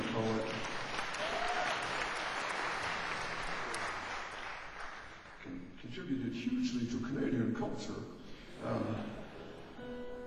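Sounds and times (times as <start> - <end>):
audience applause: 0.0 - 5.4
speech: 6.1 - 9.1.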